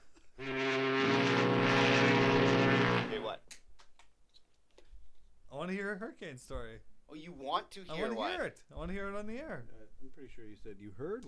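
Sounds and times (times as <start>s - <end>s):
foghorn sound effect: 0.4s - 3.3s
speech: 5.7s - 11.2s.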